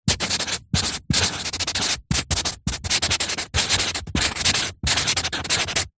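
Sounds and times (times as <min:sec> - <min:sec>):
marker pen writing on cardboard sheet: 0:00.0 - 0:05.9.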